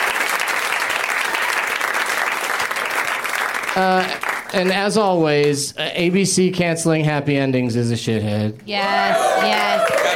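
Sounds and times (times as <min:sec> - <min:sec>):
audience applause: 0:00.0 - 0:05.0, 0:09.1 - 0:10.1
speech: 0:03.8 - 0:10.1.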